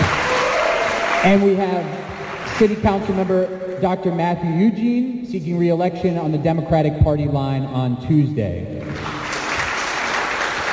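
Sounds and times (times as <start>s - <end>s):
crowd applause: 0.0s - 3.0s, 8.8s - 10.7s
speech: 1.2s - 9.1s.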